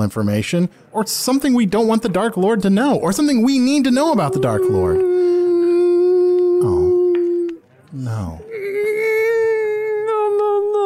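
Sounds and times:
speech: 0.0 - 5.3, 7.9 - 8.6
woman crying in a long high wail: 4.1 - 7.6, 8.5 - 10.8.

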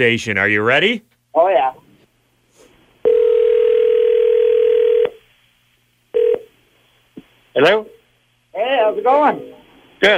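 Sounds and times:
speech: 0.0 - 1.8, 7.6 - 7.9, 8.9 - 10.1
outgoing phone call ringing tone: 3.0 - 5.2, 6.1 - 6.5.

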